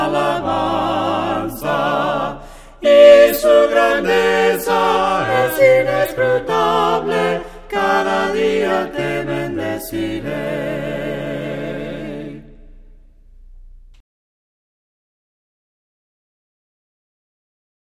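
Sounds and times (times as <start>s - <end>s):
voices singing hymns a cappella: 0.0s - 13.1s.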